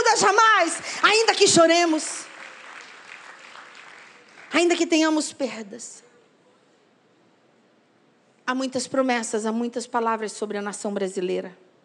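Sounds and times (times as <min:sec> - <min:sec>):
speech: 0:00.2 - 0:02.2, 0:04.5 - 0:06.1, 0:08.5 - 0:11.6
audience applauding: 0:01.0 - 0:04.8.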